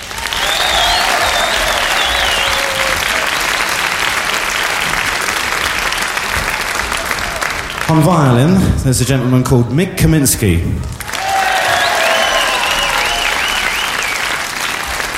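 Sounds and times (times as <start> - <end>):
crowd applause: 0.0 - 8.0, 11.0 - 15.1
high whistles: 0.2 - 3.6, 11.4 - 14.4
speech: 7.9 - 11.0.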